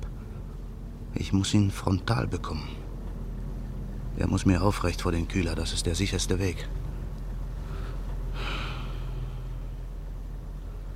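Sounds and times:
low steady rumble: 0.0s - 10.9s
speech: 1.3s - 2.8s, 4.2s - 6.8s
deep breathing of cold night air: 7.6s - 9.9s.

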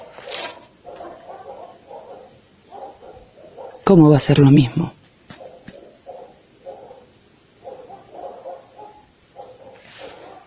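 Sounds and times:
dogs barking: 0.0s - 4.0s, 5.2s - 10.4s
speech: 3.9s - 5.0s.

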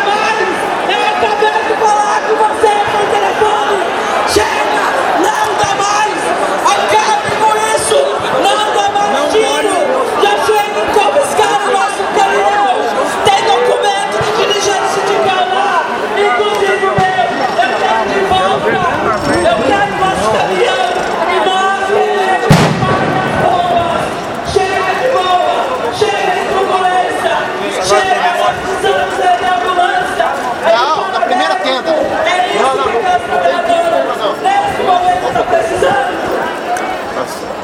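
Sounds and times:
dense protesting crowd shouting and chattering: 0.0s - 37.6s
loud bang like a bomb blast: 22.5s - 24.3s.

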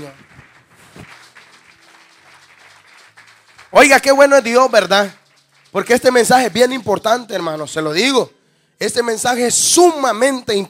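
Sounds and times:
speech: 0.0s - 0.3s, 3.7s - 10.6s
congregation clapping during a church service: 0.0s - 8.2s.

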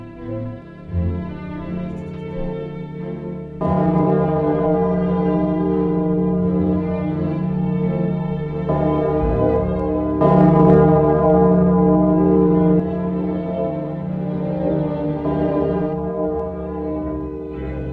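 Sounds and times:
temple bell in a bell tower ringing: 0.8s - 17.9s.

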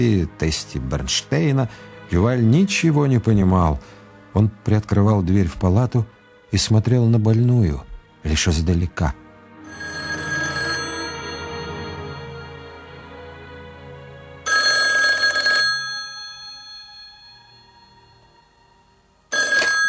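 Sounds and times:
speech: 0.0s - 9.2s
telephone bell ringing: 9.7s - 12.6s, 14.5s - 18.2s, 19.3s - 19.8s.

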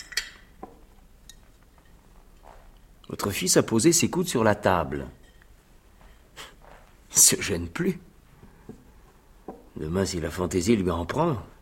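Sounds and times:
dinner plates clinking as a chipped plate is swapped at a table: 0.0s - 2.2s, 5.1s - 6.5s
speech: 3.1s - 5.3s, 7.3s - 8.1s, 9.8s - 11.6s.

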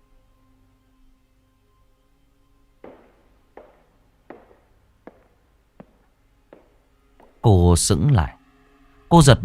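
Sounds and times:
man's shuffling footsteps outside: 2.8s - 7.5s
speech: 7.4s - 8.4s, 9.1s - 9.4s.

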